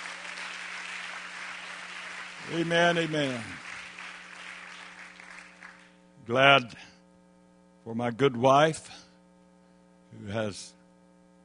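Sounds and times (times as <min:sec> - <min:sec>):
church congregation clapping hands: 0:00.0 - 0:06.0
low steady hum: 0:00.0 - 0:11.4
speech: 0:02.4 - 0:03.6, 0:06.3 - 0:06.9, 0:07.9 - 0:09.0, 0:10.1 - 0:10.8.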